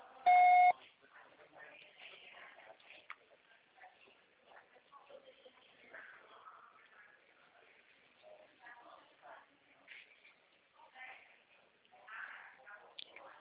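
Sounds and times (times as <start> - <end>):
quiet talking: 0.0 - 13.3
voicemail recording tone electronic beep: 0.3 - 0.7.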